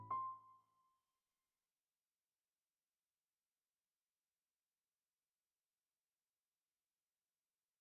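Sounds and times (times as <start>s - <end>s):
piano: 0.0s - 0.4s.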